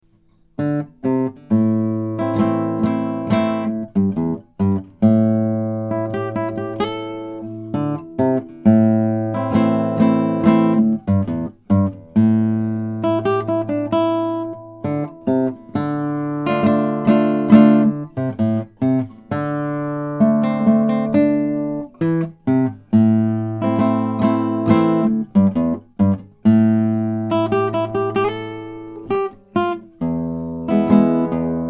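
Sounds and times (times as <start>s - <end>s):
blues piece: 0.6s - 31.6s.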